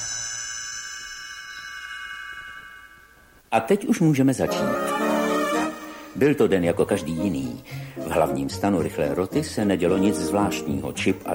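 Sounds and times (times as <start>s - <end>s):
small bell chime for page turn: 0.0s - 3.3s
speech: 3.5s - 4.9s, 6.2s - 11.3s.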